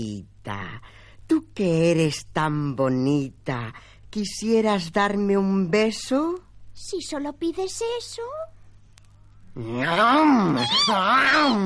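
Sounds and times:
speech: 0:00.0 - 0:08.6, 0:09.6 - 0:11.6
cat meowing: 0:09.8 - 0:11.6.

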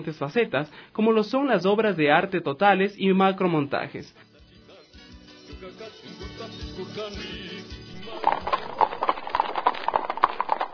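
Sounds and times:
speech: 0:00.0 - 0:04.3, 0:06.1 - 0:07.5
hooves of two horses clip-clopping indoors: 0:07.9 - 0:10.7.

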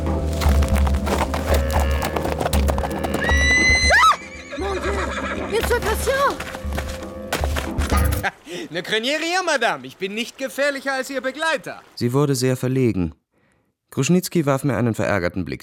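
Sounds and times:
horse hooves clip-clopping: 0:00.2 - 0:04.2, 0:05.6 - 0:11.8
horse whinnying while whipped and ridden out of bushes: 0:01.2 - 0:05.6
speech: 0:08.6 - 0:13.2, 0:13.9 - 0:15.6.

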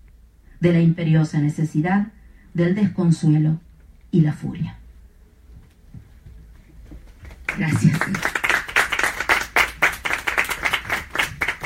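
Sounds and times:
speech: 0:00.6 - 0:04.8, 0:07.6 - 0:08.4
audience applause after a poetry reading at a museum: 0:07.3 - 0:11.6.

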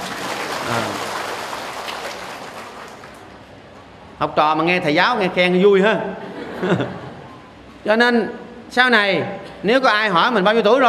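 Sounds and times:
audience applause at a Buddhist dharma talk: 0:00.0 - 0:03.5
speech: 0:00.7 - 0:01.1, 0:04.2 - 0:07.0, 0:07.8 - 0:10.8
laughter: 0:06.2 - 0:07.3.

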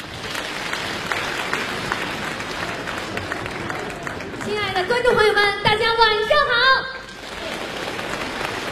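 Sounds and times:
audience applause at a crosstalk comedy show: 0:00.0 - 0:05.3, 0:07.1 - 0:08.7
speech: 0:04.8 - 0:07.0.

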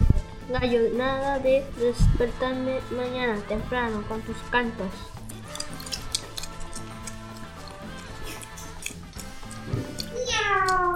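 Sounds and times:
speech: 0:00.5 - 0:05.2
cat meowing: 0:10.1 - 0:10.9.

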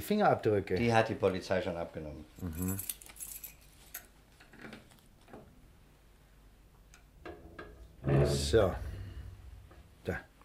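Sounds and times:
speech: 0:00.1 - 0:03.0, 0:08.2 - 0:08.9, 0:10.1 - 0:10.3
safe keys jangling: 0:02.4 - 0:04.1.

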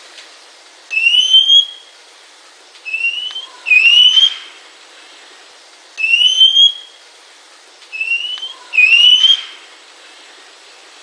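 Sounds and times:
Oriental magpie-robin singing clear slightly rising whistles: 0:00.9 - 0:01.9, 0:02.9 - 0:04.5, 0:06.0 - 0:07.0, 0:07.9 - 0:09.6.

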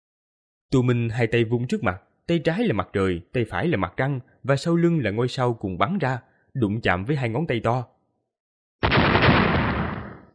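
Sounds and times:
speech: 0:00.7 - 0:07.9
explosion sound effect: 0:08.8 - 0:10.3.

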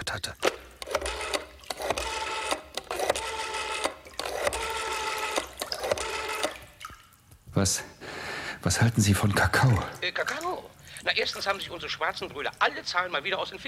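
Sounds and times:
speech: 0:00.1 - 0:00.5, 0:07.6 - 0:07.9, 0:08.6 - 0:13.6
telephone being dialed: 0:00.4 - 0:06.7.

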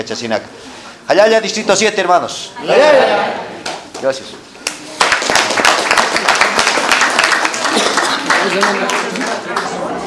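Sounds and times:
speech: 0:00.0 - 0:04.5, 0:08.4 - 0:09.3
crowd applause in Achocalla at mayor's handover to District 7: 0:03.6 - 0:10.0.

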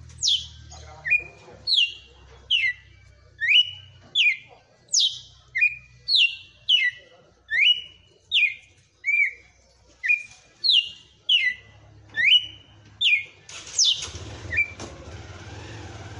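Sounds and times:
Red-cowled cardinal song: 0:00.1 - 0:14.8.

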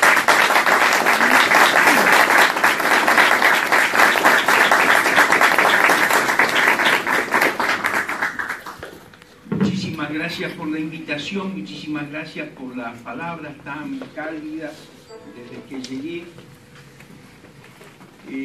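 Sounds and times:
audience applause: 0:00.0 - 0:09.0
speech: 0:10.4 - 0:16.5.

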